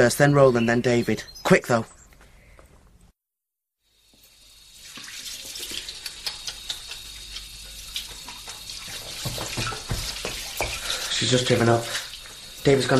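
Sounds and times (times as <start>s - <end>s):
speech: 0.0s - 2.0s, 11.2s - 12.0s, 12.6s - 12.9s
tap water running into a sink for hand washing: 4.0s - 12.9s.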